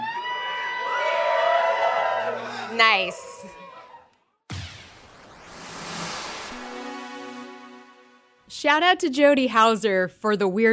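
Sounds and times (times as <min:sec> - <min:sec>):
live audience screaming on cue: 0:00.0 - 0:04.1
speech: 0:02.8 - 0:03.2, 0:08.6 - 0:10.7.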